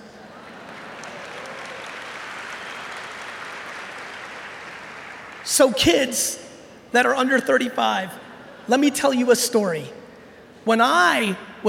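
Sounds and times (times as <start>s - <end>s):
crowd applause: 0.0s - 5.5s
speech: 5.5s - 10.0s, 10.6s - 11.6s.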